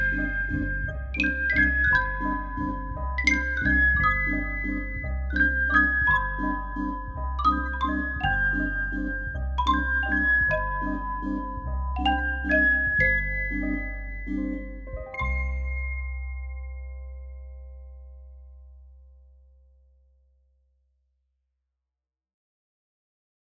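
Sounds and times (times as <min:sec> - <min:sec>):
xylophone waltz: 0:00.0 - 0:18.2.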